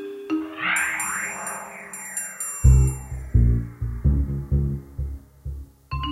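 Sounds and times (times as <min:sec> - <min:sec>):
ambience: 0:00.3 - 0:05.0.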